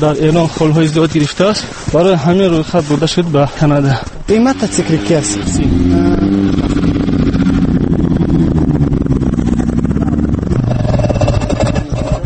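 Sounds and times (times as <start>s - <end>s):
speech: 0.0s - 6.2s
snow motorcycle engine on snowy road: 4.3s - 12.2s.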